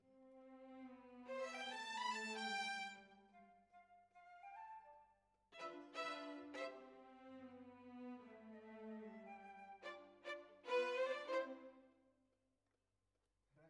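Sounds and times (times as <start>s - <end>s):
violins: 0.3s - 3.3s, 5.6s - 11.8s.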